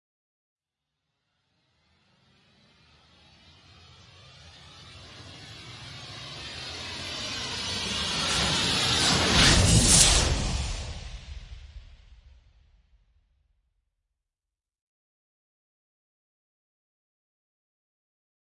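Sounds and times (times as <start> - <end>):
meteor storm: 2.6 - 12.8.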